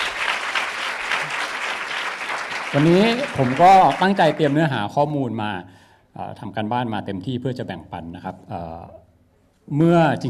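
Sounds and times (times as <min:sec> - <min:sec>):
audience applause: 0:00.0 - 0:04.9
speech: 0:02.7 - 0:09.0, 0:09.7 - 0:10.2.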